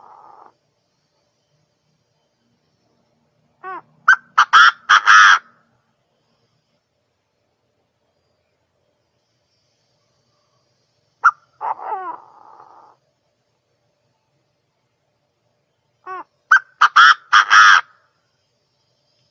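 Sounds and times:
partridge calling: 0:03.6 - 0:05.6, 0:11.2 - 0:13.0, 0:16.0 - 0:17.9.

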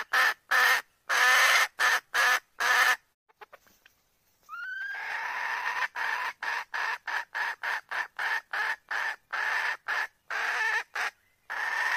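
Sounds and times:
red junglefowl calling: 0:00.0 - 0:03.6, 0:04.5 - 0:11.9.

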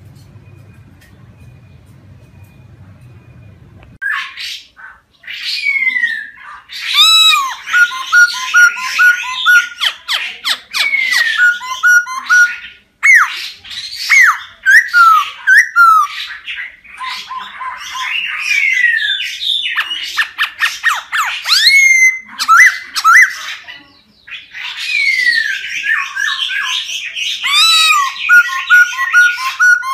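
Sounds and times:
laughingthrush song: 0:04.0 - 0:23.7, 0:24.3 - 0:29.9.

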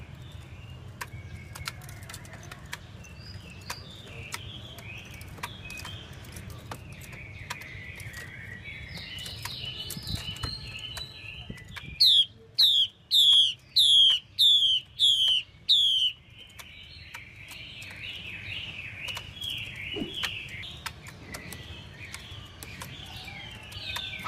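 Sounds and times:
Chinese hwamei warbling and whistling: 0:12.0 - 0:16.2.

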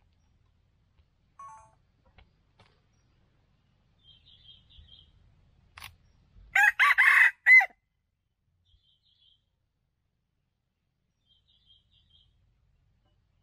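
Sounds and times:
red junglefowl crowing: 0:06.6 - 0:07.8.

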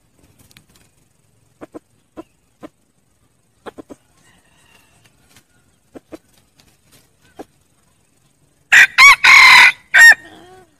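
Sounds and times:
red junglefowl crowing: 0:04.2 - 0:05.7, 0:08.7 - 0:10.7.

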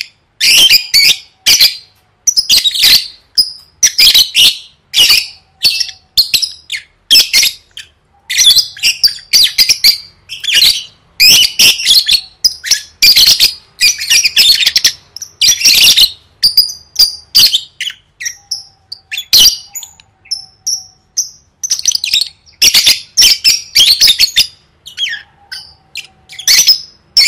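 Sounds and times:
lovebird squawking: 0:00.0 - 0:27.2.

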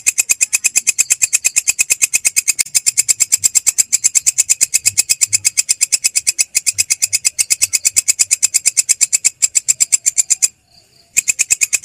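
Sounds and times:
grasshopper stridulating: 0:00.0 - 0:11.8.

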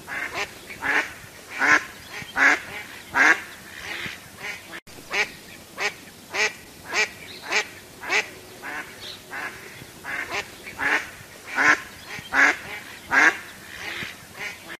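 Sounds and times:
duck quacking: 0:00.1 - 0:14.7.

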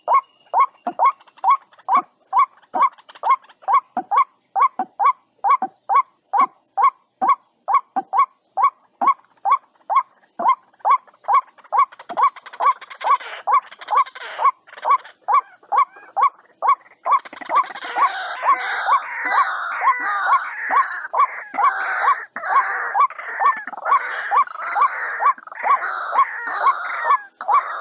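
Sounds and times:
white-breasted waterhen calling: 0:00.0 - 0:27.7.

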